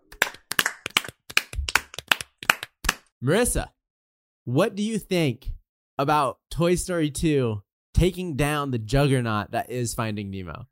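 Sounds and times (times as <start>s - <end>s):
hand clapping: 0.0s - 3.1s
speech: 3.2s - 3.8s, 4.5s - 10.7s.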